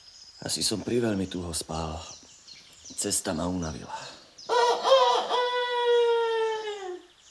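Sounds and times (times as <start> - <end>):
speech: 0.4 - 2.2, 2.9 - 4.2
rooster crowing: 4.5 - 7.1.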